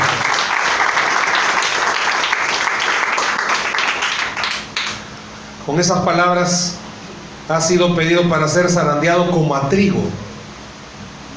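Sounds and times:
crowd applause: 0.0 - 5.0
speech: 5.8 - 6.8, 7.5 - 10.2.

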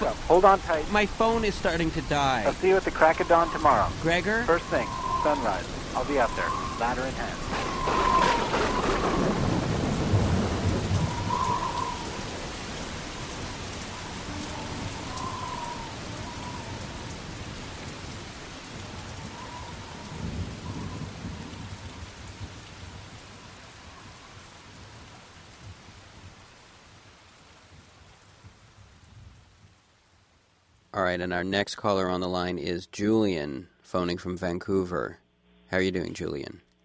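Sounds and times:
faint high chirps: 0.0 - 9.5
deep rumble of thunder: 0.0 - 26.4
steady rain: 0.0 - 32.5
speech: 0.1 - 8.1, 31.1 - 36.6.

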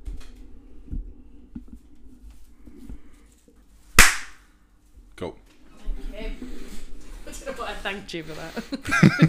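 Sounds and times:
hand clap into microphone for syncing: 4.0 - 4.4
speech: 5.2 - 5.4, 7.5 - 9.2
laughter: 8.5 - 9.2.

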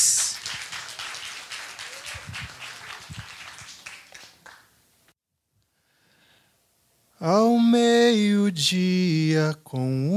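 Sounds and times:
audience applause: 0.0 - 4.7
speech: 7.2 - 10.1.

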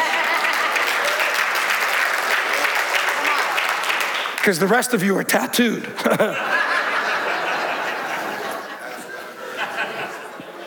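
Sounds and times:
laughter: 0.0 - 1.2, 5.8 - 10.6
audience hand claps: 0.0 - 4.5
speech: 4.4 - 6.7.

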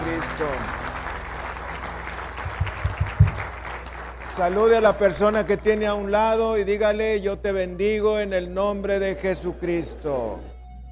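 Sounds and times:
audience applause: 0.0 - 6.0
speech: 4.4 - 10.5.

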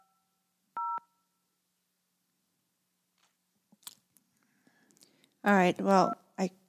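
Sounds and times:
telephone keypad dialing tones: 0.8 - 1.1
speech: 5.5 - 6.6.

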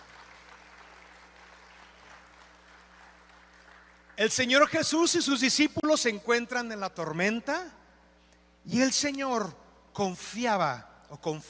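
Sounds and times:
audience clapping: 0.0 - 4.7
low electrical hum: 0.0 - 11.4
speech: 4.2 - 7.8, 8.7 - 11.4.

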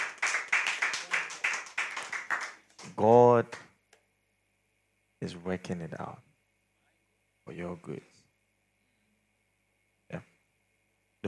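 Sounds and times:
audience clapping: 0.0 - 3.7
speech: 3.0 - 3.7, 5.2 - 6.3, 7.5 - 8.1.

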